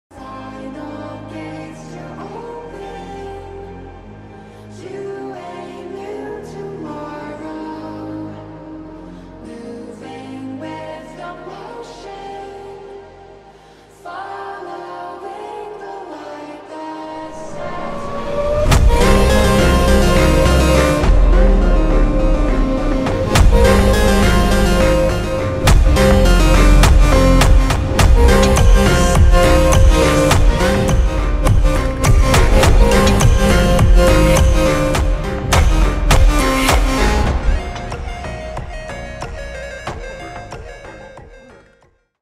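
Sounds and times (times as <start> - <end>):
slowed funk music: 17.2 - 41.9.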